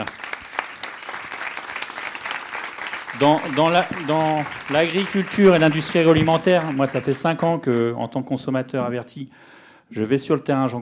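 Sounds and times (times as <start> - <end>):
audience applause: 0.0 - 7.6
speech: 3.2 - 10.8.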